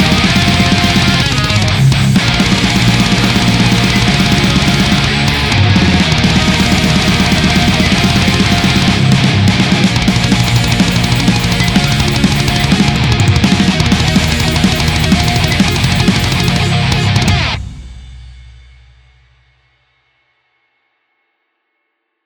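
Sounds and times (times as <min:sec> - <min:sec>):
instrumental music: 0:00.0 - 0:17.6.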